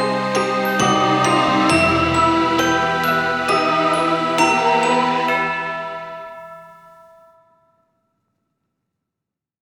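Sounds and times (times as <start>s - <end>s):
Halloween background music: 0.0s - 7.6s.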